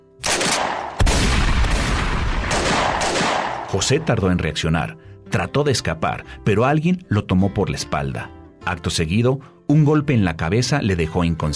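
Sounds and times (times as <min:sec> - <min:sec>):
gunshots: 0:00.2 - 0:04.1
speech: 0:03.7 - 0:11.5.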